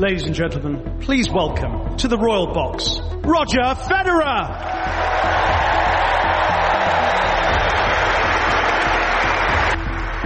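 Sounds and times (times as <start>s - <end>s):
speech: 0.0s - 5.3s
standing ovation applause from spectators: 4.6s - 10.2s.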